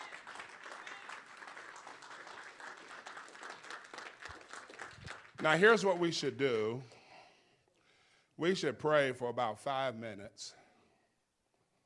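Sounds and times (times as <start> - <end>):
crowd applause: 0.0 - 6.1
speech: 5.4 - 7.0, 8.4 - 10.6.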